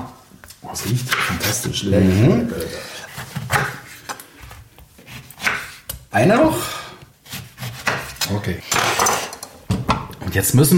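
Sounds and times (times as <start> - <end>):
speech: 0.7 - 3.0, 6.2 - 6.8, 8.4 - 9.2, 10.3 - 10.7
knife slicing oranges: 0.8 - 6.6, 7.2 - 9.2.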